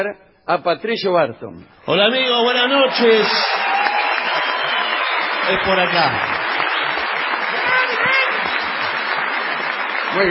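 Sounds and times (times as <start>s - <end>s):
speech: 0.0s - 3.7s, 5.5s - 6.3s
audience ovation applause: 2.4s - 10.2s.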